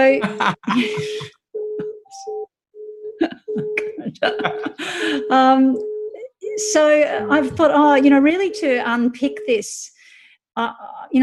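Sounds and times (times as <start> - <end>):
speech: 0.0 - 1.4, 4.2 - 5.9, 6.6 - 9.9, 10.6 - 11.2
laughter: 0.1 - 2.0, 3.2 - 5.3
mobile phone ringing with an electronic melody: 1.0 - 9.6.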